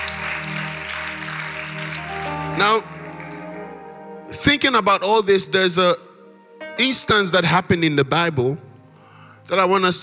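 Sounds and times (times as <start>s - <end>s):
audience clapping: 0.0s - 3.8s
speech: 2.6s - 2.9s, 4.4s - 6.1s, 6.8s - 8.7s, 9.5s - 10.0s.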